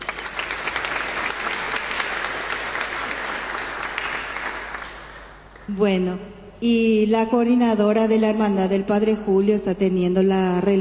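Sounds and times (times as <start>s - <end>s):
audience applause: 0.0s - 5.5s
speech: 5.7s - 10.7s.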